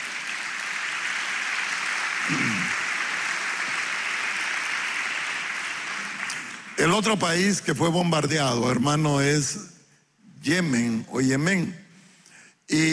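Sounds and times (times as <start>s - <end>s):
crowd clapping: 0.0s - 7.3s
speech: 2.3s - 2.8s, 6.8s - 9.7s, 10.4s - 11.8s, 12.7s - 12.9s.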